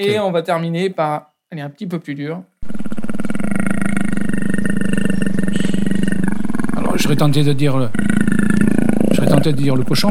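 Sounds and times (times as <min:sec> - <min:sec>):
speech: 0:00.0 - 0:02.9, 0:07.1 - 0:08.2, 0:09.4 - 0:10.0
big cat roaring: 0:02.6 - 0:10.0.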